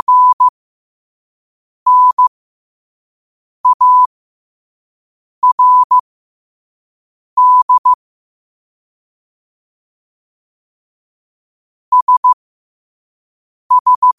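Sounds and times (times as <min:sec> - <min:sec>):
morse code at 5 wpm: 0:00.0 - 0:00.5, 0:01.9 - 0:02.3, 0:03.6 - 0:04.1, 0:05.4 - 0:06.0, 0:07.4 - 0:08.0, 0:11.9 - 0:12.4, 0:13.7 - 0:14.1.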